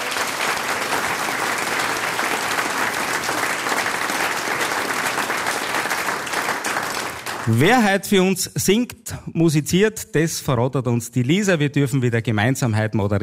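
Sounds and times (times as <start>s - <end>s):
audience clapping: 0.0s - 8.0s
speech: 7.5s - 13.2s.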